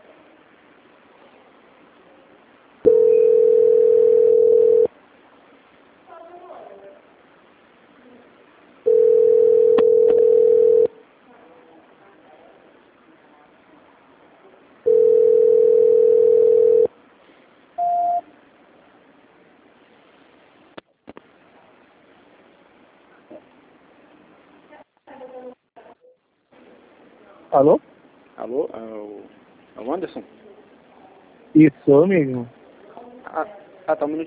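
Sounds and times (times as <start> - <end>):
telephone transfer tone: 2.9 - 4.9, 8.9 - 10.9, 14.9 - 16.9
short higher beep: 17.8 - 18.2
speech: 27.6 - 27.8, 28.5 - 30.3, 31.6 - 32.6, 33.9 - 34.2.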